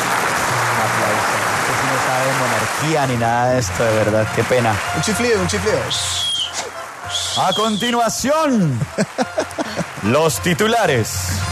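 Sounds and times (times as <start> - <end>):
audience applause for a king character: 0.0 - 11.5
speech: 2.2 - 6.3, 7.4 - 11.5
laughter: 8.4 - 10.5.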